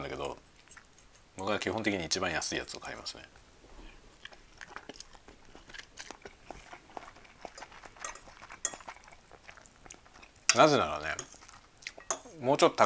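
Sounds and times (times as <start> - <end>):
chewing and crunching: 0.5 - 1.2, 3.9 - 12.2
speech: 1.6 - 3.5, 10.6 - 11.2, 12.4 - 12.8
cutlery clinking on dishes: 8.0 - 9.1, 10.2 - 12.4.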